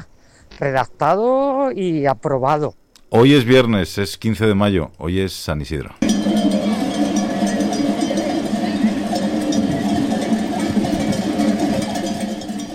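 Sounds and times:
speech: 0.6 - 6.0
large flock of sheep passing through streets of Huesca: 6.1 - 12.7.

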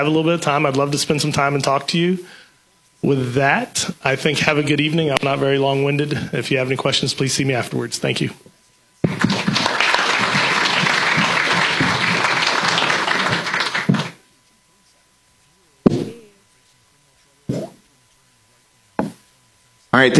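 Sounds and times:
speech: 0.0 - 2.4, 3.0 - 8.5, 19.9 - 20.1
audience applause after candidate speeches: 9.1 - 14.2.

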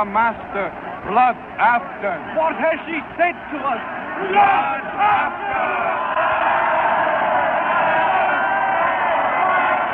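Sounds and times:
speech: 0.0 - 6.5
agitated crowd shouting in a square: 3.8 - 9.9.

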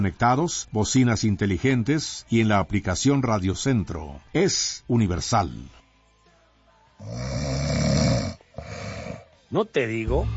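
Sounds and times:
speech: 0.0 - 5.8, 7.0 - 7.8, 9.5 - 10.3
loud rasping snore: 7.0 - 9.4.

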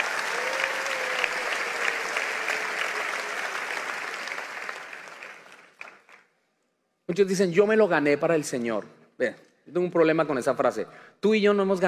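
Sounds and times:
audience applauding: 0.0 - 6.3
speech: 7.1 - 11.8.

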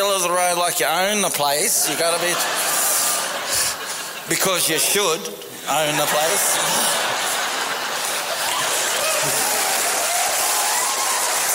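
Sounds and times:
speech: 0.0 - 3.6, 4.3 - 7.2
faint murmur of crowd voices: 1.2 - 11.5
laughter: 1.7 - 5.0, 5.7 - 11.0
audience clapping: 6.3 - 11.5.

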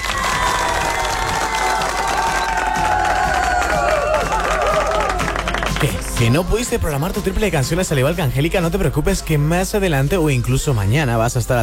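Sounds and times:
crowd applauding: 0.0 - 6.8
speech: 5.8 - 11.6.

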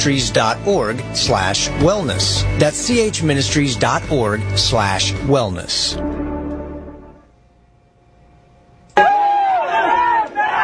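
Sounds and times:
speech: 0.0 - 6.2
crowd cheering in celebration: 9.0 - 10.6
high whooping shouts: 9.0 - 10.6.

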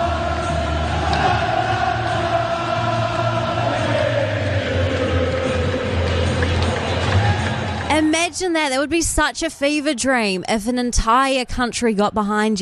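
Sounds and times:
huge football crowd singing a chant in unison: 0.0 - 7.9
speech: 8.4 - 12.6.

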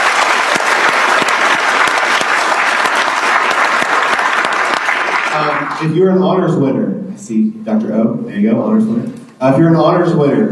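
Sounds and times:
audience applause: 0.0 - 5.9
speech: 5.4 - 10.5.

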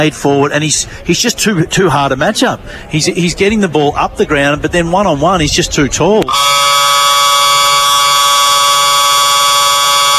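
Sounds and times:
speech: 0.0 - 6.6
football quarter-time siren: 6.3 - 10.1.

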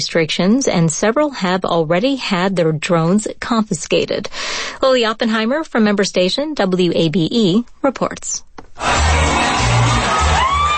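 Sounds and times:
speech: 0.0 - 9.6
football fans cheering at a World Cup fan fest in Atlanta: 8.8 - 10.7
people shouting: 8.8 - 10.7
person whooping: 8.8 - 10.7.

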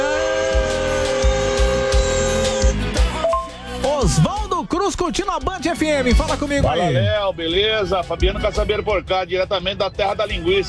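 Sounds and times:
car horn honking: 0.0 - 3.6
speech: 4.0 - 10.6.

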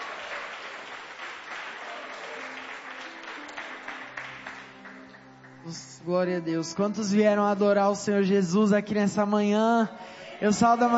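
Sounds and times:
audience applause: 0.0 - 5.6
speech: 5.7 - 10.9.

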